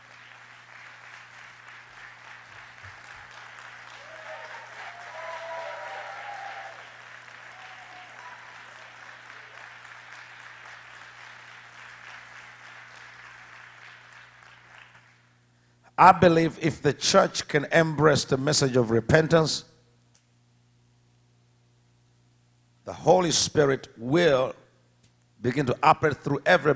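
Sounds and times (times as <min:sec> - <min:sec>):
audience clapping: 0:00.0 - 0:15.4
speech: 0:16.0 - 0:19.7, 0:23.2 - 0:24.6, 0:25.4 - 0:26.7.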